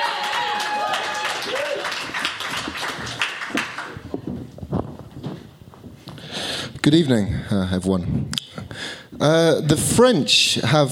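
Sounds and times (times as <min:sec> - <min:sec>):
audience clapping: 0:00.0 - 0:04.1
speech: 0:06.8 - 0:08.4, 0:09.2 - 0:10.9.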